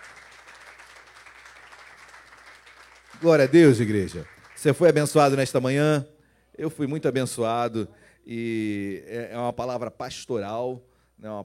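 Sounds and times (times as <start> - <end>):
audience applause: 0.0 - 5.1
speech: 3.2 - 11.4.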